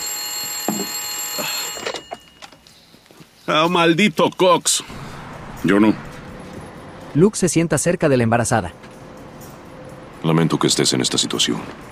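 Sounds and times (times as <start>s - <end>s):
telephone ringing: 0.0s - 2.7s
speech: 3.5s - 5.0s, 5.6s - 6.1s, 7.1s - 9.0s, 10.2s - 11.8s.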